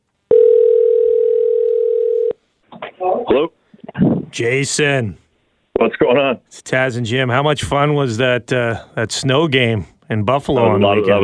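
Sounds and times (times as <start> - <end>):
telephone dial tone while placing a phone call: 0.3 - 2.4
speech: 3.3 - 3.6, 4.3 - 5.2, 5.8 - 11.2.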